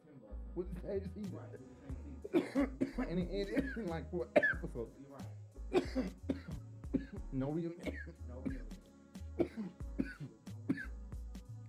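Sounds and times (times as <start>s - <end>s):
speech: 0.6s - 6.5s, 7.3s - 8.7s
person coughing while smoking marijuana: 2.2s - 4.7s, 5.7s - 8.7s, 9.4s - 11.0s.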